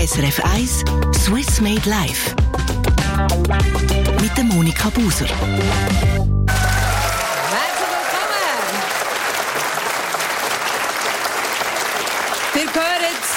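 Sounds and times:
speech: 0.0 - 6.3
audience applause at a live stage show: 6.5 - 13.3.

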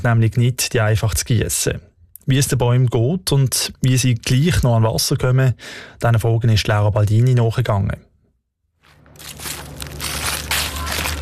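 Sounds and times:
speech: 0.0 - 8.1
footsteps through dry fallen leaves: 8.8 - 11.2.

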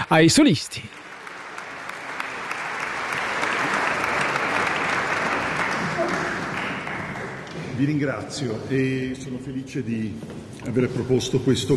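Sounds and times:
audience applauding a violinist: 0.0 - 8.1
speech: 0.1 - 1.0, 7.8 - 11.7.

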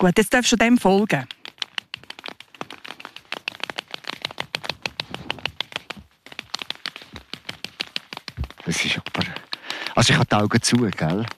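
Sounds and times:
speech: 0.0 - 1.4, 10.0 - 11.3
rapid irregular dry tapping: 0.6 - 11.3.

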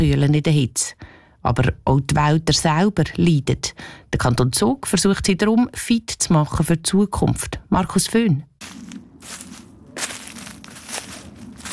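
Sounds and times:
speech: 0.0 - 9.5
footsteps walking through forest undergrowth: 8.6 - 11.7.

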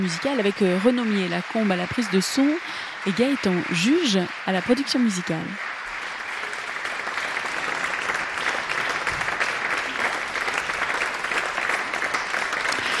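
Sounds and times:
speech: 0.0 - 5.7
concert audience applause: 0.0 - 12.9.

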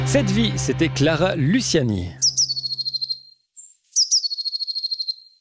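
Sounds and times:
speech: 0.1 - 2.3
blue tit singing a high thin trilling song: 2.2 - 5.3.

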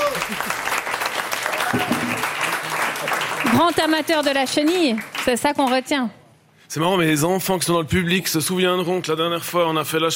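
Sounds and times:
audience applause: 0.0 - 5.5
speech: 1.7 - 1.9, 3.6 - 10.1.

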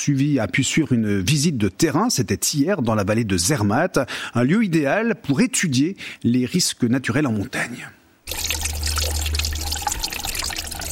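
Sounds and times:
speech: 0.0 - 8.0
mountain stream flowing: 8.3 - 10.9.

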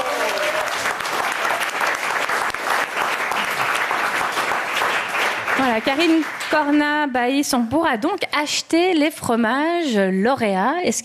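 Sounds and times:
crowd applause: 0.0 - 6.9
speech: 5.6 - 11.0.

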